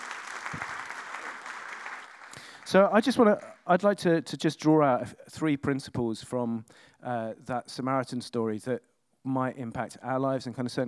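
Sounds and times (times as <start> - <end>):
audience applause: 0.0 - 3.6
speech: 2.7 - 10.8.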